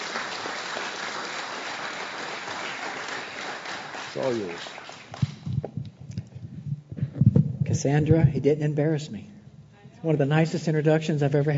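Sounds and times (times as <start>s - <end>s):
church congregation at Northwest Community Church applauding a speaker: 0.0s - 5.6s
speech: 4.2s - 4.8s, 7.8s - 9.3s, 10.0s - 11.5s.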